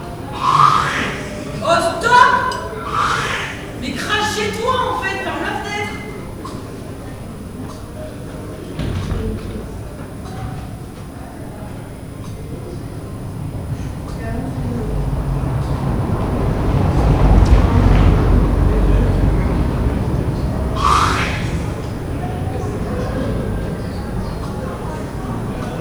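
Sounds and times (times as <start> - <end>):
neighbours reacting: 0.0 - 6.9, 12.9 - 25.7.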